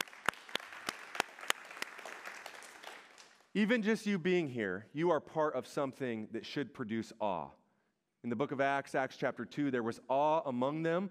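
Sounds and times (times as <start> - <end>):
audience applause: 0.0 - 3.4
speech: 3.6 - 7.6, 8.2 - 11.1.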